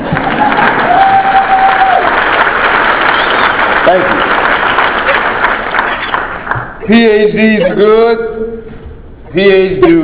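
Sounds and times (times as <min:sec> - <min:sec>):
audience applause: 0:00.0 - 0:06.8
speech: 0:03.9 - 0:04.2, 0:06.9 - 0:08.6, 0:09.3 - 0:10.0.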